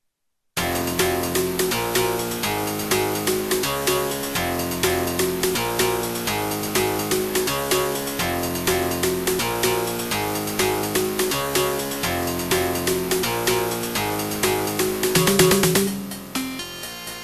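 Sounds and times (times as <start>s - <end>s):
rock music: 0.6s - 16.6s.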